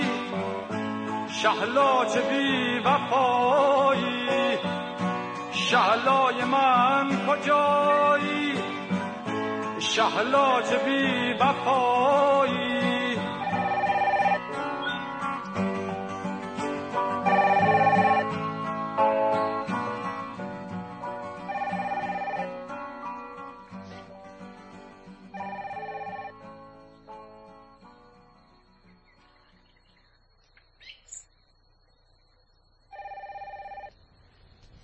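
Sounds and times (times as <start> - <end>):
music: 0.0 - 29.7
speech: 1.4 - 5.0, 5.7 - 8.7, 10.0 - 12.7
telephone ringing: 13.4 - 14.5, 17.2 - 18.4, 21.4 - 22.8, 25.3 - 26.4, 32.9 - 33.9.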